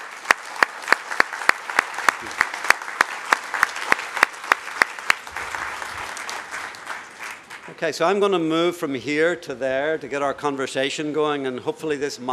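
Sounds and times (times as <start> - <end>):
audience applause: 0.0 - 7.9
speech: 7.7 - 12.3.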